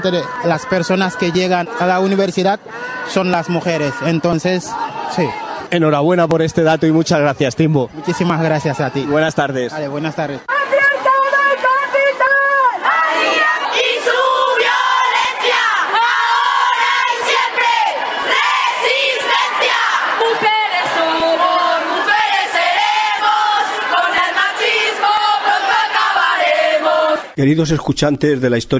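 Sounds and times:
speech: 0.0 - 10.5, 27.4 - 28.7
crowd chanting at a street demonstration against gender violence in Valencia: 0.2 - 5.7, 10.3 - 27.4.

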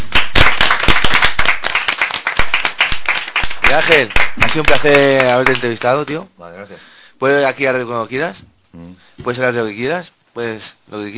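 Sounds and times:
audience applause: 0.1 - 5.8
speech: 3.7 - 11.1.

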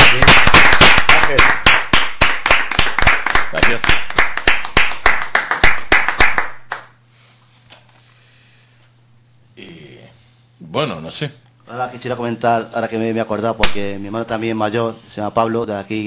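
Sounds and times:
audience applause: 0.0 - 6.9
speech: 11.1 - 16.0.

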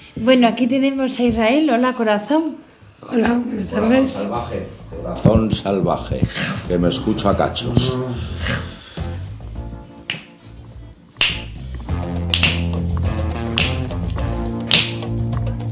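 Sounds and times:
speech: 0.2 - 8.8
song with sustained instruments and low bass: 3.8 - 15.7
finger snapping: 10.0 - 10.4, 11.2 - 15.5.

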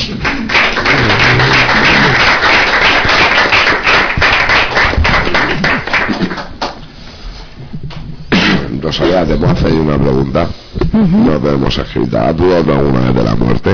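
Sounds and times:
applause for psychologists: 0.0 - 6.8
speech: 9.1 - 13.7.

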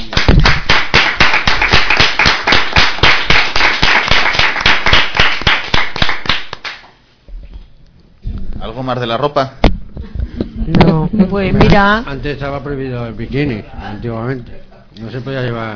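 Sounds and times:
audience applause: 0.0 - 6.8
speech: 8.8 - 9.6, 10.7 - 15.7.

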